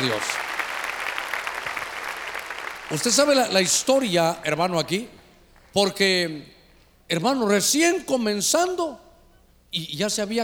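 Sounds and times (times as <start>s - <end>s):
speech: 0.0s - 0.5s, 2.9s - 5.2s, 5.8s - 6.5s, 7.1s - 9.0s, 9.7s - 10.4s
clapping applause: 0.0s - 3.4s.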